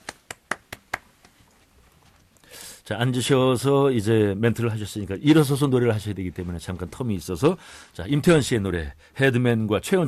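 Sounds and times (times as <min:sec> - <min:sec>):
hand claps: 0:00.0 - 0:01.4
speech: 0:02.5 - 0:10.0.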